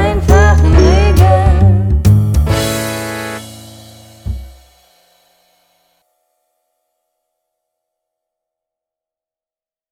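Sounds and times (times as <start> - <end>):
jingle: 0.4 - 5.9.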